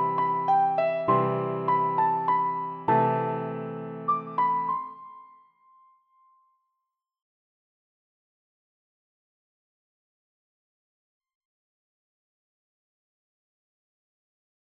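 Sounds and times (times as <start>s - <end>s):
piano: 0.0s - 6.1s.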